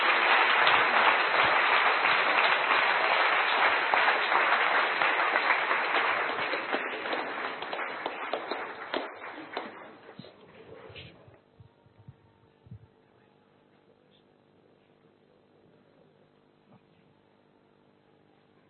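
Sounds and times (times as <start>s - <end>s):
audience clapping: 0.0s - 10.8s.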